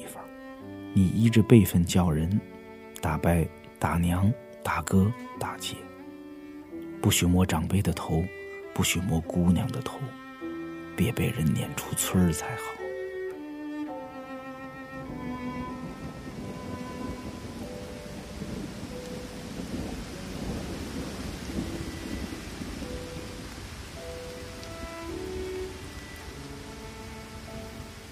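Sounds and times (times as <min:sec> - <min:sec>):
soft sustained melodic tones: 0:00.0 - 0:28.0
steady rain: 0:00.0 - 0:28.0
speech: 0:01.0 - 0:05.9, 0:07.0 - 0:10.2, 0:11.0 - 0:12.8
deep thunder rumbling: 0:14.9 - 0:28.0.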